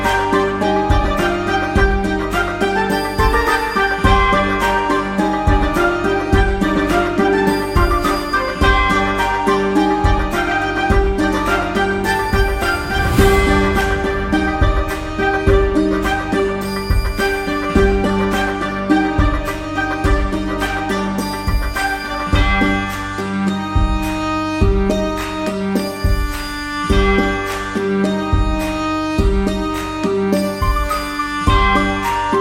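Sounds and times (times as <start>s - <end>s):
medieval bardcore version of a song: 0.0s - 32.3s.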